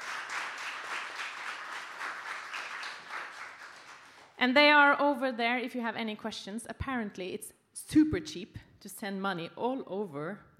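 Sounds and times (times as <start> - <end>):
audience applause: 0.0 - 4.2
speech: 4.4 - 10.5.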